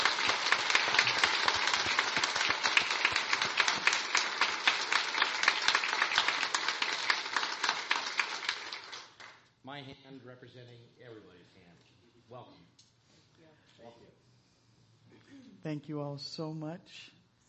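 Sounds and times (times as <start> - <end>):
audience applause: 0.0 - 9.4
speech: 15.2 - 17.2.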